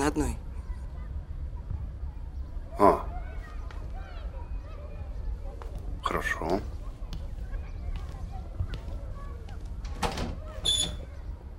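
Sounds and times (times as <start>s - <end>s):
people talking quietly: 0.0s - 11.5s
speech: 0.1s - 0.4s
door being opened or closed with knocks and rattles: 9.8s - 10.8s
brief high squeak: 10.6s - 11.1s.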